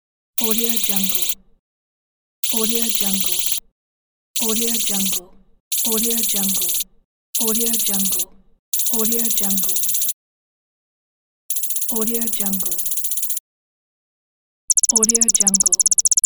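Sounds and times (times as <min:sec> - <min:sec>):
digital text data scrolling: 0:00.4 - 0:01.4, 0:02.4 - 0:03.6, 0:04.4 - 0:06.8, 0:07.4 - 0:08.2, 0:08.8 - 0:10.2, 0:11.5 - 0:13.4, 0:14.7 - 0:16.2.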